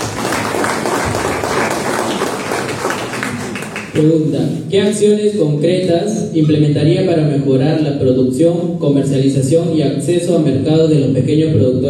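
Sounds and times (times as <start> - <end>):
audience applause: 0.0 - 4.0
speech: 4.0 - 11.8.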